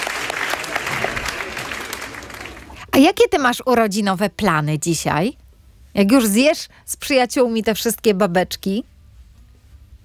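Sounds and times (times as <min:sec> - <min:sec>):
applause sound effect for a young girl's sixth birthday: 0:00.0 - 0:02.8
speech: 0:03.0 - 0:05.4, 0:06.0 - 0:08.9.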